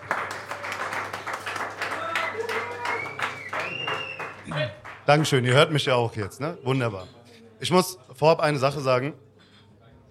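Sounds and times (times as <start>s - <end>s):
audience applause: 0.0s - 5.6s
speech: 5.1s - 9.2s.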